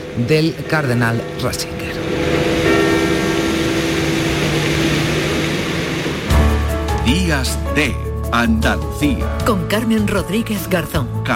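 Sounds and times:
church bells tolling in mourning for Benedict XVI: 0.0 - 7.3
speech: 0.2 - 2.5, 7.1 - 11.3.

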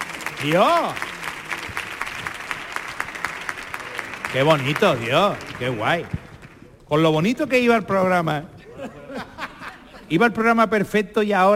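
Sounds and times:
audience applause: 0.0 - 6.7
speech: 0.4 - 1.1, 4.3 - 6.2, 6.9 - 9.0, 10.1 - 11.5
laughter: 8.6 - 10.3.

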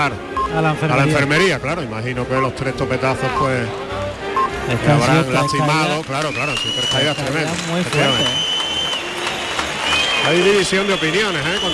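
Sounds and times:
speech: 0.0 - 4.0, 4.7 - 8.5, 10.2 - 11.7
bullring crowd clapping: 5.2 - 11.7.

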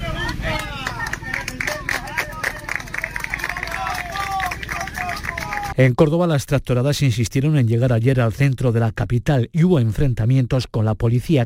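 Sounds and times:
chatter: 0.0 - 5.8
cheering voices: 0.0 - 5.8
outdoor crowd of farmers applauding: 0.0 - 5.8
speech: 5.8 - 11.4.

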